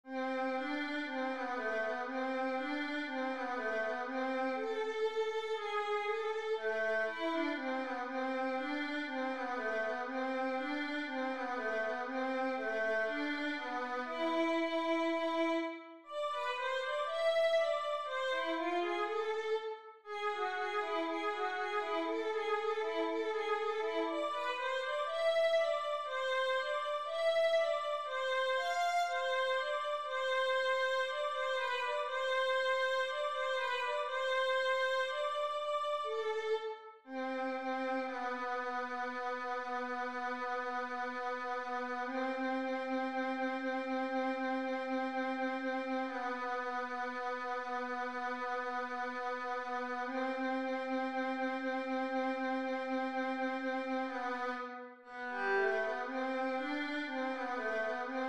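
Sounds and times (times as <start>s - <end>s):
violin etude: 0.0s - 58.2s.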